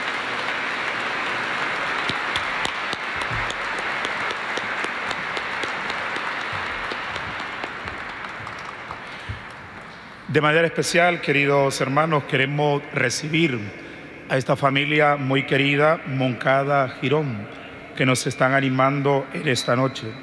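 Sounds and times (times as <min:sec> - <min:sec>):
audience applause: 0:00.0 - 0:09.9
speech: 0:10.3 - 0:20.2.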